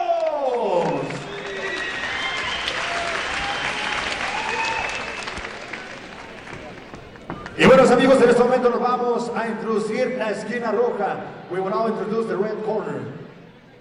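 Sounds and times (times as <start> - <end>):
boxing arena crowd applause: 0.1 - 8.3
speech: 8.0 - 13.2.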